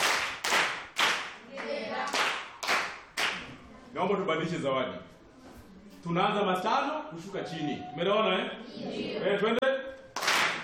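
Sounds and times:
group clapping during a Swahili grammar lesson: 0:00.0 - 0:03.6, 0:10.1 - 0:10.6
speech: 0:04.0 - 0:05.1, 0:06.0 - 0:09.7.

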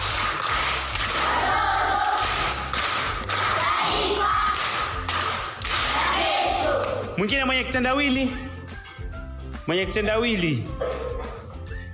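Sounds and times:
group clapping for an aunt at a primary school riddle session: 0:00.0 - 0:07.3
speech: 0:07.3 - 0:08.5, 0:09.6 - 0:10.9.

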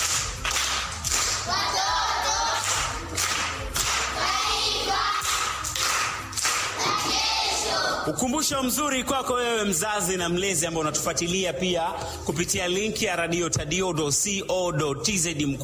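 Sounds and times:
clapping for a seventh-grade primary school pupil: 0:00.0 - 0:08.0
speech: 0:08.1 - 0:15.6.

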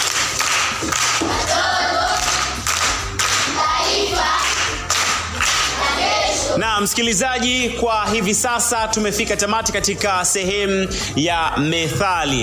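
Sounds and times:
applause for a primary-school pupil's correct answer: 0:00.0 - 0:05.9
speech: 0:06.8 - 0:12.4.

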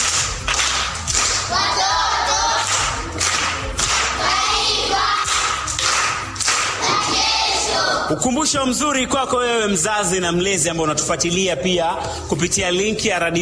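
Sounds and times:
applause for a primary schoolgirl who answered correctly: 0:00.0 - 0:07.8
speech: 0:08.1 - 0:13.4.

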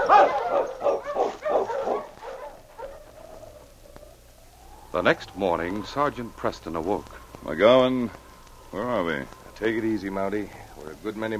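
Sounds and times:
dog barking and whimpering: 0:00.0 - 0:04.0
speech: 0:05.0 - 0:11.3.

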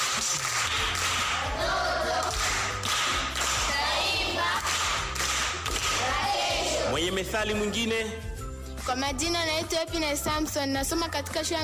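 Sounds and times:
pupils at Miembeni primary school clapping for a class 7 girl: 0:00.0 - 0:06.8
speech: 0:07.2 - 0:11.6.

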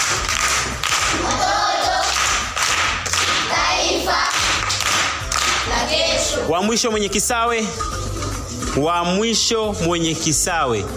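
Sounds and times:
audience clapping for a primary school pupil at a school quiz: 0:00.0 - 0:05.8
speech: 0:06.5 - 0:08.0, 0:08.8 - 0:10.9.

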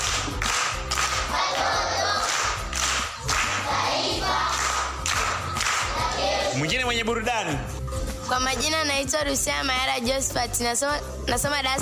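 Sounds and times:
applause for a singer: 0:00.0 - 0:03.7, 0:04.4 - 0:06.0
speech: 0:07.0 - 0:11.8.

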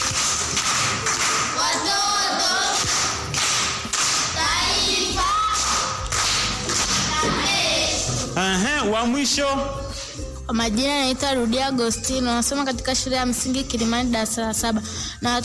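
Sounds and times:
audience clapping at a primary school event: 0:00.0 - 0:07.6
speech: 0:08.5 - 0:09.8, 0:10.5 - 0:15.4.

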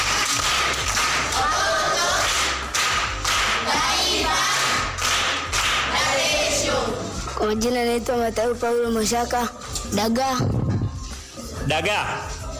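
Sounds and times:
group clapping for an aunt at a primary school gathering: 0:00.0 - 0:07.4
speech: 0:07.4 - 0:10.6, 0:11.7 - 0:12.4.

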